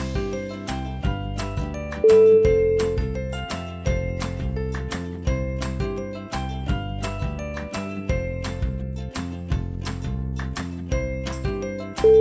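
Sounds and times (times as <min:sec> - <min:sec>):
ukulele beats: 0:00.0 - 0:12.1.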